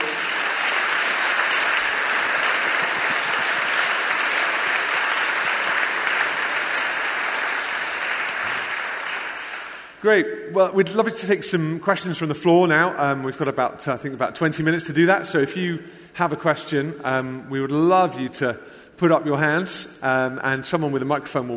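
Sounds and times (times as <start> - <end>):
audience applause: 0.0 - 10.0
speech: 10.0 - 21.5.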